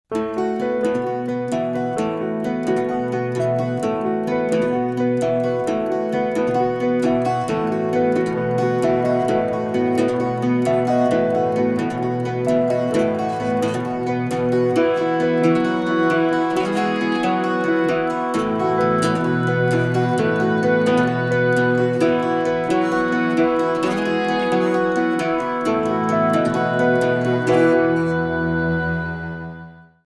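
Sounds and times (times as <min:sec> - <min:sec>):
acoustic studio music: 0:00.1 - 0:30.0.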